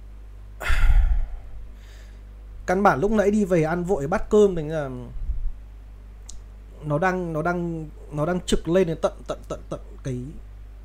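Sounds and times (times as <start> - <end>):
labored heavy breathing: 0.6 - 2.2
speech: 2.7 - 5.2, 6.8 - 10.5.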